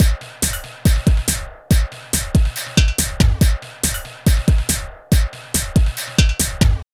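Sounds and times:
drum loop: 0.0s - 6.9s.

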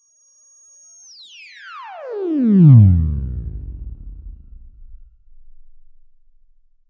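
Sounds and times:
synthetic falling sound: 2.1s - 5.2s.

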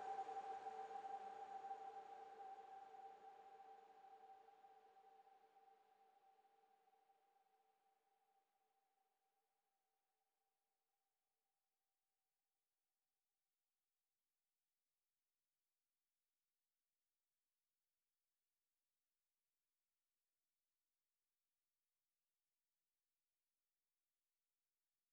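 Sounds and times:
lush synth pad in G: 0.0s - 6.2s.

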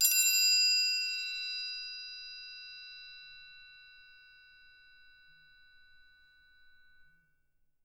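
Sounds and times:
triangle percussion: 0.0s - 7.7s.

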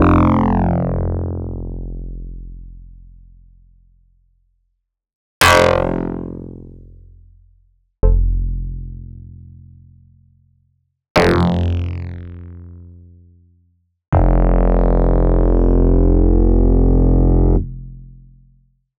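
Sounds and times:
Casio VZ10M synthesizer bass: 0.0s - 2.5s, 5.4s - 6.7s, 8.0s - 9.0s, 14.2s - 17.9s.

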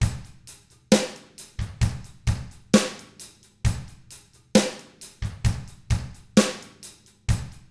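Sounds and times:
slow rock drums: 0.0s - 7.7s.

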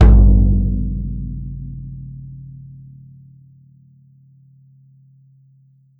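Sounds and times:
mixed world instrument drums: 0.0s - 2.2s.

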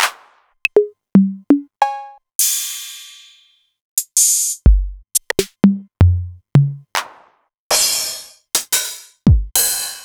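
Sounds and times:
Novation Drumstation drum machine: 0.0s - 2.0s, 4.0s - 10.0s.

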